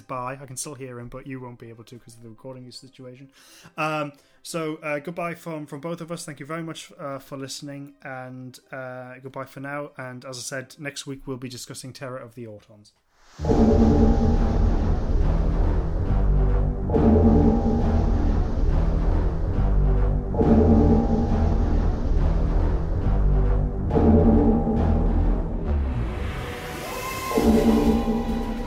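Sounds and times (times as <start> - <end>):
speech: 0.1 - 14.7
cloister bell alarm tolling: 13.4 - 15.3, 16.9 - 18.9, 20.3 - 22.8, 23.9 - 28.6
low droning hum: 13.4 - 26.0.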